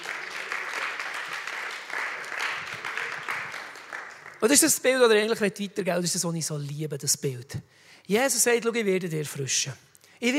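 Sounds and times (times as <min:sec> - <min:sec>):
audience applause: 0:00.0 - 0:04.6
speech: 0:04.4 - 0:10.3.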